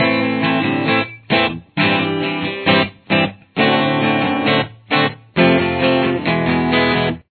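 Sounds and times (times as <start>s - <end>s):
guitar with chorus effect: 0.0s - 7.3s.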